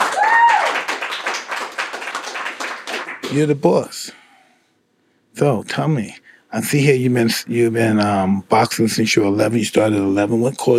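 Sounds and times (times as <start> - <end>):
hands clapping: 0.0 - 3.6
speech: 3.3 - 4.2, 5.4 - 10.7.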